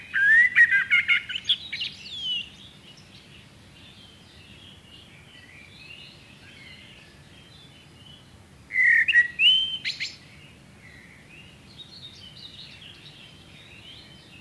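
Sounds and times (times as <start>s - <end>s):
Common Blackbird Turdus merula merula: 0.0s - 14.3s.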